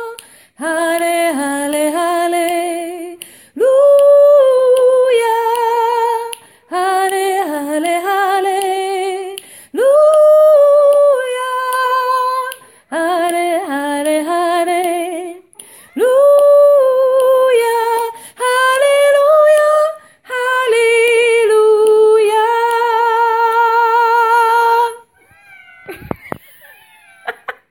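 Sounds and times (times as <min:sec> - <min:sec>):
soprano singing: 0:00.0 - 0:25.1.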